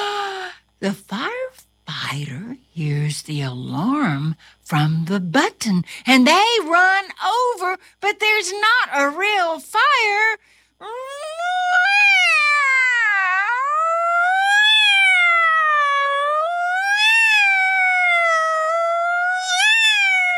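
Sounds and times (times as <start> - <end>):
speech: 0.8 - 11.7
cat meowing: 10.8 - 20.3
howling: 10.9 - 20.3.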